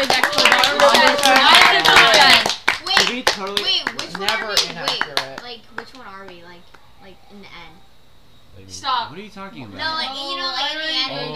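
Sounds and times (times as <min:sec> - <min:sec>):
group round of applause: 0:00.0 - 0:06.4
speech: 0:09.1 - 0:11.3.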